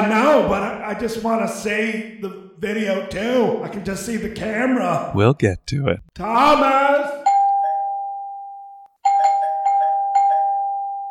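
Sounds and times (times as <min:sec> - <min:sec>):
speech: 0:00.1 - 0:07.2
doorbell ringing at front door: 0:07.3 - 0:11.0.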